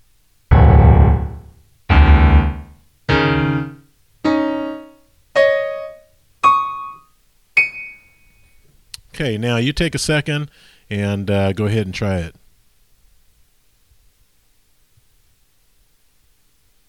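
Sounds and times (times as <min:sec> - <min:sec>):
piano two-note chords on the black keys: 0:00.5 - 0:08.2
speech: 0:09.2 - 0:12.4.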